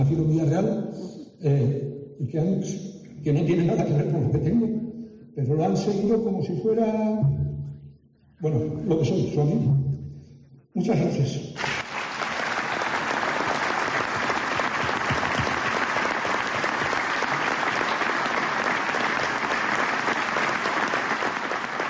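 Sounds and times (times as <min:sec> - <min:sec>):
speech: 0:00.0 - 0:04.8, 0:05.4 - 0:07.4, 0:08.4 - 0:09.8, 0:10.8 - 0:11.8
auditorium audience applause at Villarreal: 0:11.6 - 0:21.8.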